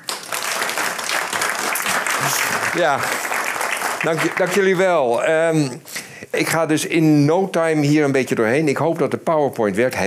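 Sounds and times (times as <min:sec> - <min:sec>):
audience applause: 0:00.0 - 0:05.1
speech: 0:02.3 - 0:03.2, 0:04.0 - 0:10.0.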